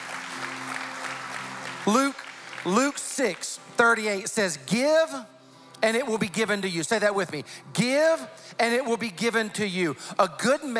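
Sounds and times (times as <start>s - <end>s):
audience clapping: 0.0s - 4.1s
speech: 1.8s - 10.7s.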